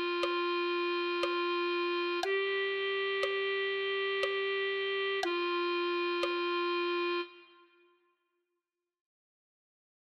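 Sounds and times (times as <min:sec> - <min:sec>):
clarinet melody: 0:00.0 - 0:07.9.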